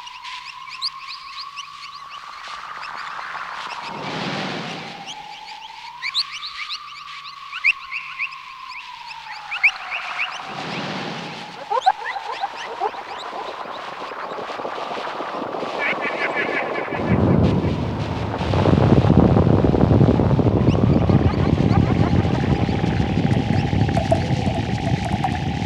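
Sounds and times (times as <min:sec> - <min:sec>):
dense rushing noise: 0:03.5 - 0:05.2, 0:10.4 - 0:25.6
whooshing surges: 0:03.6 - 0:05.2, 0:10.4 - 0:25.6
steady droning tone in a South American jungle: 0:11.2 - 0:25.6.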